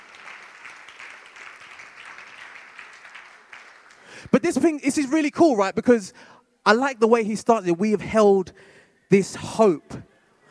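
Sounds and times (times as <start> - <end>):
audience applause: 0.0 - 4.3
speech: 4.2 - 10.1.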